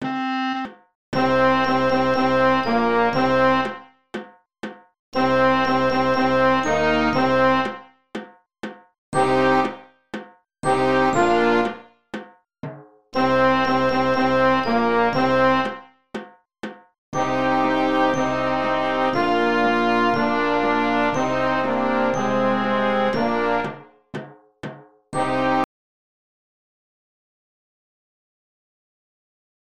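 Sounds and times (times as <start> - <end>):
band playing a rondo: 0.1 - 3.8, 5.2 - 7.8, 9.2 - 9.8, 10.6 - 11.8, 13.2 - 15.8, 17.2 - 23.9, 25.2 - 25.6.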